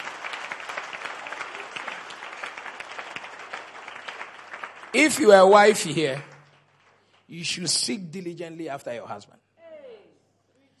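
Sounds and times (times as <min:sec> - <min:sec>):
audience applause: 0:00.0 - 0:07.6
speech: 0:05.0 - 0:06.3, 0:07.3 - 0:09.4.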